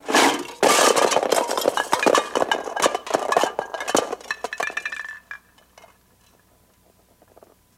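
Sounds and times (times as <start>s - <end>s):
room being ransacked: 0.0s - 4.3s
cups and things falling while ransacking a room: 0.0s - 6.0s.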